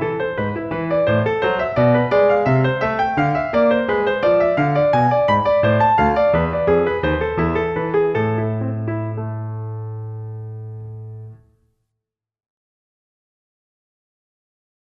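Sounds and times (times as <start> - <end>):
classical piece in A minor: 0.0 - 11.7.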